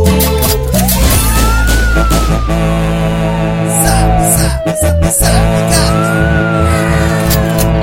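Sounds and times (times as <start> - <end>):
police car sirens wailing: 0.1 - 7.8.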